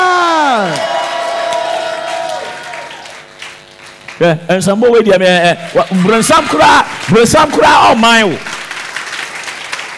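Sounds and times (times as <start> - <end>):
audience shouting: 0.0 - 3.1
audience clapping: 0.6 - 4.3, 5.4 - 9.9
speech: 4.2 - 8.5.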